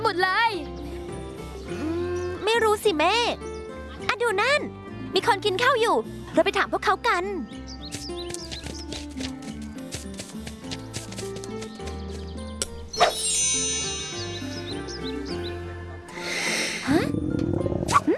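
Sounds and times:
melodic music: 0:00.0 - 0:18.1
speech: 0:02.8 - 0:03.5, 0:04.2 - 0:07.6
cartoon-like stomach growling from hunger: 0:16.8 - 0:18.1.

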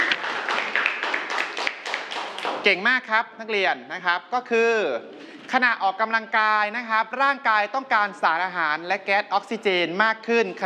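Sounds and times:
classroom students applauding a classmate: 0:00.0 - 0:02.6
speech: 0:02.6 - 0:10.6.

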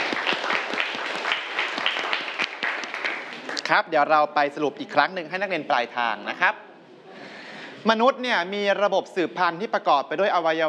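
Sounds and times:
students applauding: 0:00.0 - 0:03.8
speech: 0:03.7 - 0:06.7, 0:07.8 - 0:10.6.

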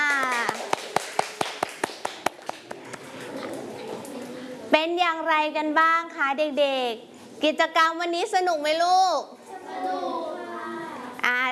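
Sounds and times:
children clapping: 0:00.0 - 0:02.8
speech: 0:04.7 - 0:10.2.

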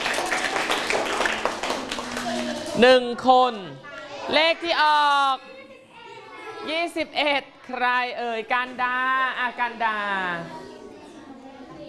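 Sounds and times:
children clapping for a classmate: 0:00.0 - 0:02.8
speech: 0:02.8 - 0:05.5, 0:06.6 - 0:10.6.

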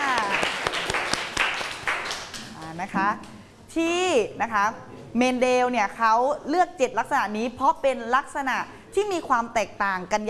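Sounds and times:
applause: 0:00.0 - 0:02.7
speech: 0:02.8 - 0:10.2.

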